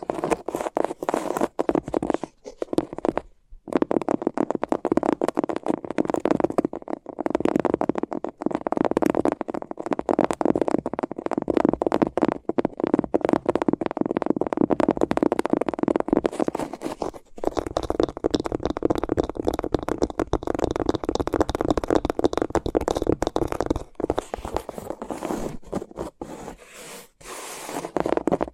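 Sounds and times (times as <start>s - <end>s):
tape scratching and crackling over microphones: 0.0s - 28.5s.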